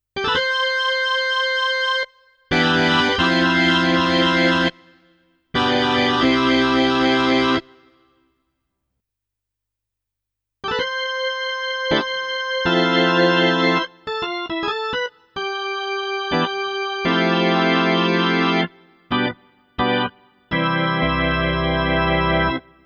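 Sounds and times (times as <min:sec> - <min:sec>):
organ: 0:00.2 - 0:05.0, 0:05.6 - 0:07.9, 0:10.6 - 0:22.8.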